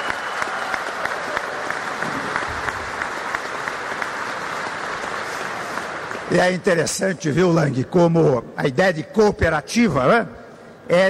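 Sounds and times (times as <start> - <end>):
audience applause: 0.0 - 7.0
speech: 6.3 - 11.0.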